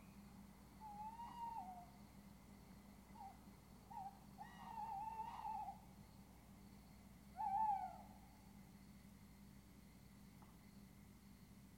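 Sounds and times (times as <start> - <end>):
owl hooting: 0.8 - 1.9, 3.1 - 5.8, 7.4 - 8.2.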